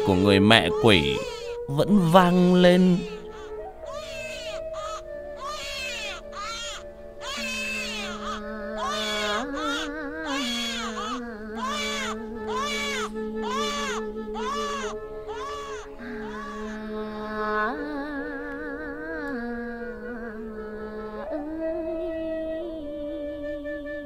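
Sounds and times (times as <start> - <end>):
eerie child crying in a horror setting: 0.0 - 1.6, 3.1 - 16.9
speech: 0.1 - 3.2.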